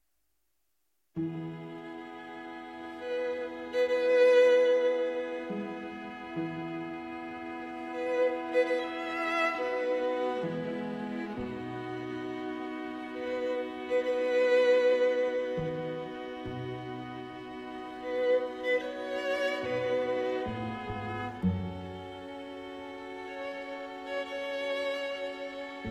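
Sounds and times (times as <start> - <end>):
string quintet playing an adagio: 1.2 - 25.9.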